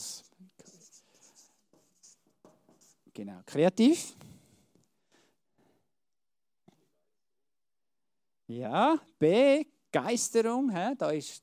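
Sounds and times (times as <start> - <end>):
pen or chalk strokes of handwriting: 0.6 - 3.1
speech: 3.2 - 4.2, 8.5 - 11.4.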